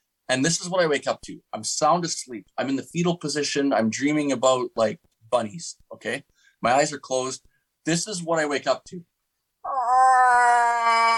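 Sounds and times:
speech: 0.3s - 9.1s
hunter imitating cow moose call: 9.6s - 11.1s.

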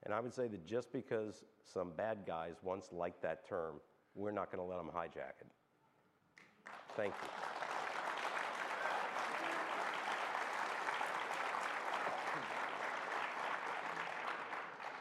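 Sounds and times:
speech: 0.1s - 5.6s, 6.6s - 7.5s
audience applause: 6.6s - 15.0s.

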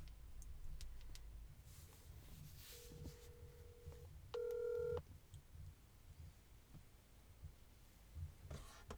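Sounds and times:
hiss: 0.0s - 8.9s
phone dialing tones on speakerphone: 2.9s - 5.0s.

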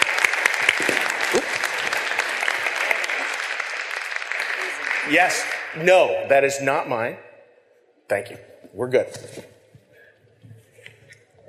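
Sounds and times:
audience applause welcoming panelists: 0.0s - 6.3s
speech: 5.1s - 7.3s, 8.1s - 9.6s.

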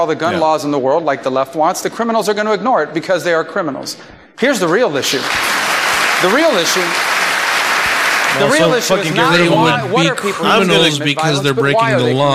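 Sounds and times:
speech: 0.0s - 5.6s, 6.2s - 7.2s, 8.4s - 12.3s
sarcastic hand clapping: 5.1s - 8.8s.

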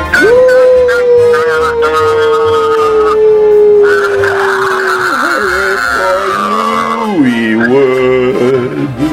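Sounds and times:
voice imitating the MGM lion roar: 0.2s - 8.9s.

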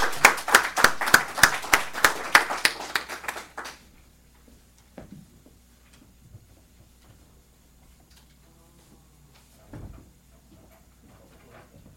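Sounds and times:
audience applause: 0.0s - 3.8s.

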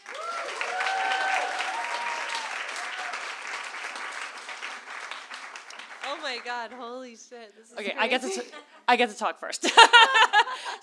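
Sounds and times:
audience applause welcoming novelists at a book event: 0.0s - 6.8s
speech: 6.2s - 10.8s
laughter: 8.0s - 8.9s, 9.6s - 10.8s.

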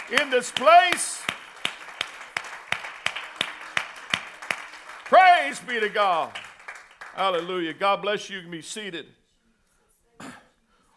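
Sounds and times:
audience clapping hands in rhythm: 0.0s - 7.9s
speech: 0.1s - 1.4s, 5.1s - 6.4s, 7.2s - 9.2s.

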